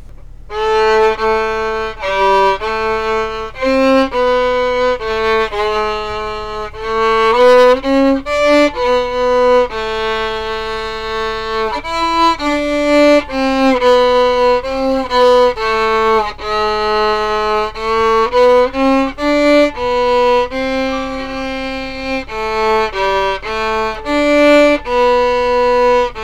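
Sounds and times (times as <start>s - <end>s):
carol: 0.0s - 26.2s.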